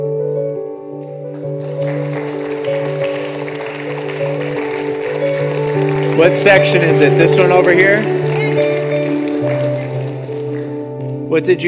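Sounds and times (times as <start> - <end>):
audience clapping: 1.3 - 11.3
droning music chord: 1.6 - 11.6
speech: 6.2 - 8.3, 11.3 - 11.6.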